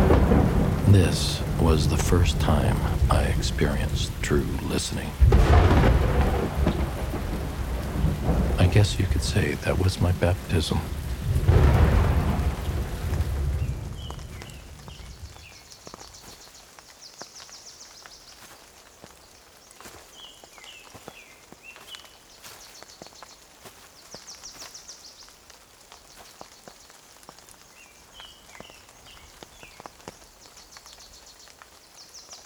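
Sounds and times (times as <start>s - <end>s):
loud rumbling thunder over a valley: 0.0s - 3.9s, 5.2s - 9.8s, 10.8s - 15.5s
heavy rain in a thunderstorm over a valley: 0.0s - 32.4s
speech: 0.9s - 6.0s, 8.6s - 11.6s.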